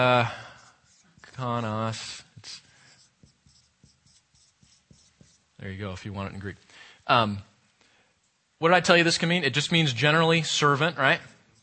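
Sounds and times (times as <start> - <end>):
speech: 0.0 - 0.4, 1.4 - 2.6, 5.6 - 7.5, 8.6 - 11.3
pen strokes handwriting a word: 0.6 - 1.4, 2.4 - 5.5, 11.0 - 11.6.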